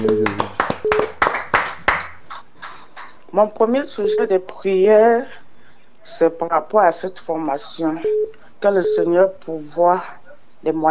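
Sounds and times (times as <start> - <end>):
speech: 0.0 - 0.4, 3.4 - 5.4, 6.0 - 10.8
church congregation clapping during a service: 0.0 - 3.2.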